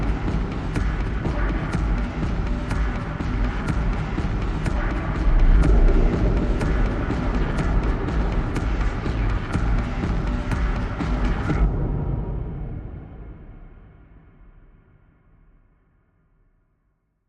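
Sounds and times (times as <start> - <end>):
drums: 0.0 - 13.8.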